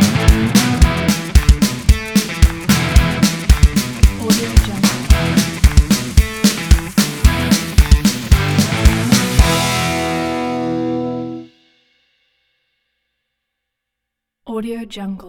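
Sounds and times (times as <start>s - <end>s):
energetic upbeat indie rock: 0.0s - 11.4s.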